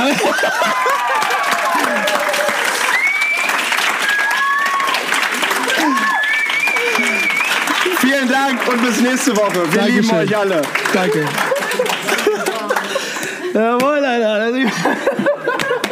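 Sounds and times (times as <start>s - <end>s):
laughter: 0.0s - 2.8s, 5.4s - 13.8s, 14.4s - 15.9s
applause sound effect from an app: 0.4s - 13.0s
speech: 8.5s - 11.5s, 13.6s - 15.3s.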